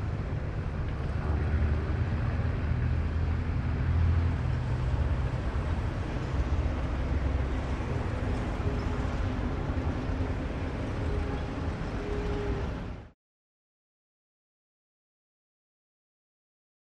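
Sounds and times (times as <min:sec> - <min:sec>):
city traffic: 0:00.0 - 0:13.2.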